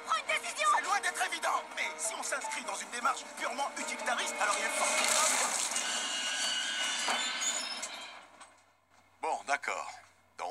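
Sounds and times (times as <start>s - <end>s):
subway train roaring past: 0.0s - 7.1s
subway train wheels screeching: 0.0s - 8.8s
speech: 1.6s - 5.4s.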